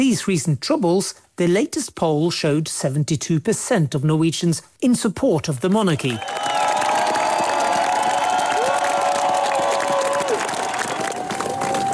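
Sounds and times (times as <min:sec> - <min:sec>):
speech: 0:00.0 - 0:06.7
crowd cheering and applauding Norway's royal family on the Oslo palace balcony: 0:06.0 - 0:11.9
sustained shouts from the crowd: 0:06.0 - 0:11.9.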